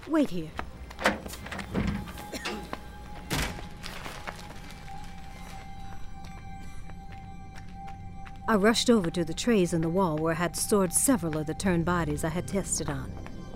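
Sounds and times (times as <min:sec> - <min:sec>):
speech: 0:00.1 - 0:00.6, 0:08.5 - 0:13.3
door being closed: 0:01.0 - 0:02.7, 0:03.3 - 0:03.7.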